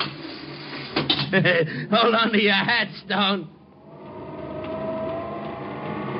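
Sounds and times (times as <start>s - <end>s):
speech: 1.3s - 3.6s
faint sustained whine: 3.5s - 6.1s
elevator whirring climbing to the roof of a 35-floor building: 3.6s - 6.1s.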